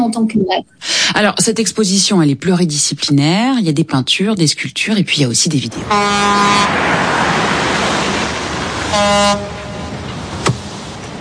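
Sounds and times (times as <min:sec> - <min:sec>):
speech: 0:00.1 - 0:07.3, 0:08.9 - 0:09.5
ship horn before departure: 0:05.8 - 0:10.3.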